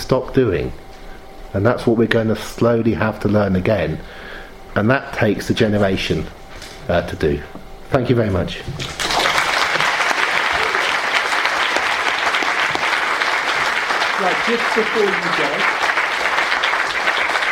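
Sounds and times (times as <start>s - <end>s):
speech: 0.1s - 0.8s, 1.5s - 9.0s, 14.2s - 15.8s
audience applause after a lecture: 8.8s - 17.5s.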